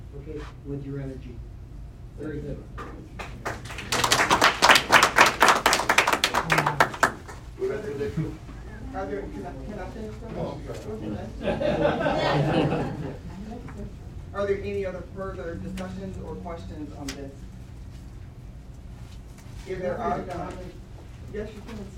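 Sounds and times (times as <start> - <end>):
speech: 0.2 - 1.6, 2.2 - 4.0, 7.6 - 17.5, 19.7 - 21.9
audience applause: 3.2 - 7.5
laughter: 11.0 - 13.7.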